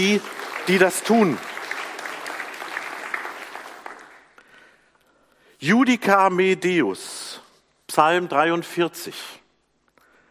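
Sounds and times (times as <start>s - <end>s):
speech: 0.0s - 1.5s, 5.6s - 7.2s, 8.0s - 9.4s
audience applauding: 0.0s - 4.4s.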